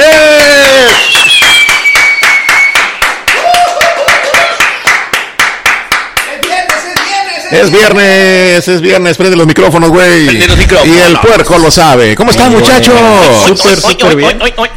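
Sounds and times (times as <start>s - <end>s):
loud applause: 0.0s - 8.0s
speech: 7.6s - 14.7s
laughter: 12.4s - 14.7s.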